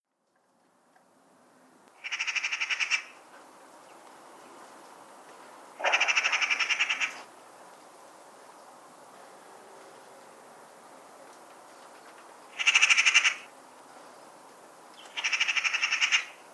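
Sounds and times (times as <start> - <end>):
bird piping call: 2.0 - 3.2, 5.8 - 7.3, 12.6 - 13.5, 15.0 - 16.4.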